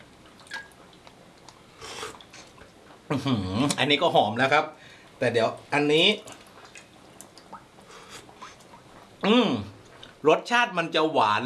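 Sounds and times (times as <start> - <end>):
chewing and biting while food is tasted: 0.1 - 3.8, 6.2 - 10.2
speech: 3.1 - 6.4, 9.2 - 11.4.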